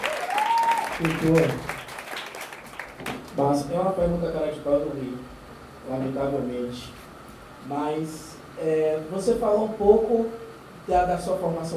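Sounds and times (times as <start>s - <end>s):
audience applauding a poet at a public talk: 0.0s - 3.4s
speech: 1.0s - 1.8s, 3.4s - 7.0s, 7.6s - 11.7s.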